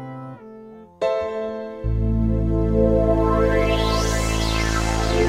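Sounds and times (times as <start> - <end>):
delay effect: 1.0 - 5.2.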